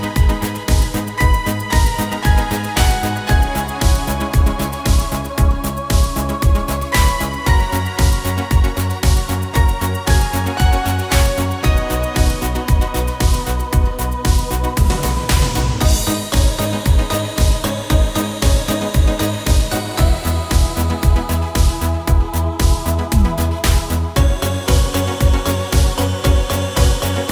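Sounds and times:
italo disco style music on a Korg Pa5x keyboard: 0.0 - 27.3.

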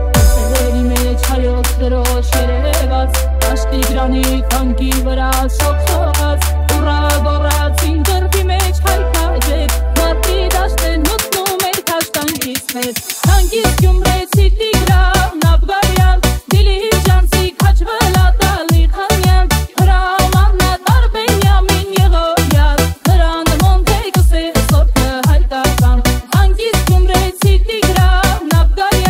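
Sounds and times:
beats remix: 0.2 - 29.0.

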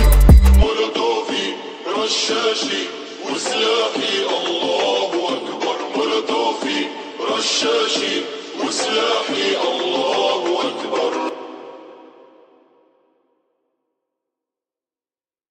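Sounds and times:
trap remix: 0.0 - 12.0.

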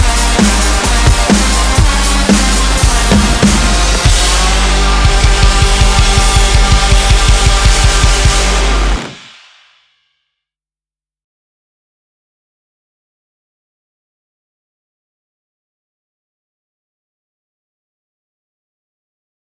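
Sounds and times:
drums playing: 0.0 - 9.6.

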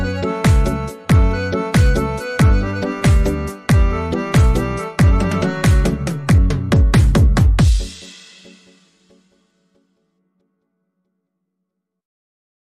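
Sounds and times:
bass music: 0.0 - 8.7.

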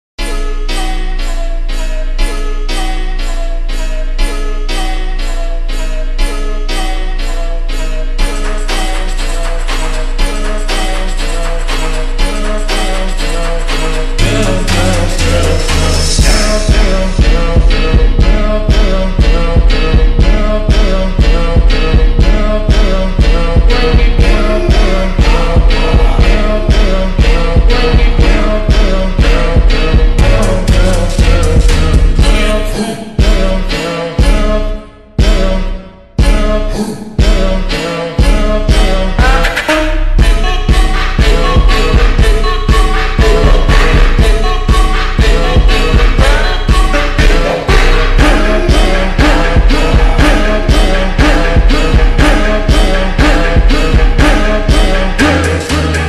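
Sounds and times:
slowed reverb music: 0.2 - 56.0.

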